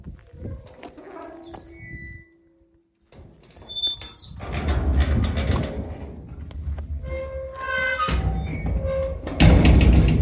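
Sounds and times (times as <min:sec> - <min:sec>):
gates: 0:00.7 - 0:10.2.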